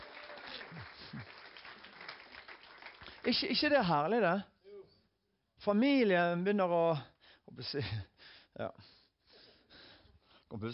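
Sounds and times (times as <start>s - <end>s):
audience applause: 0.0s - 3.8s
speech: 3.2s - 4.5s, 5.6s - 9.0s, 10.5s - 10.7s.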